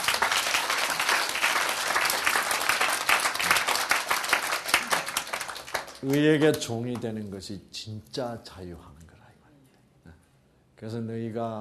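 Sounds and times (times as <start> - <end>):
audience applause in a large room: 0.0 - 6.5
speech: 6.0 - 9.0, 10.8 - 11.5.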